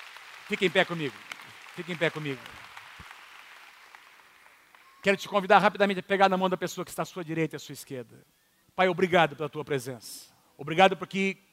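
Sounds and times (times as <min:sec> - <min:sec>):
audience applause: 0:00.0 - 0:05.0
speech: 0:00.5 - 0:02.6, 0:05.0 - 0:11.5.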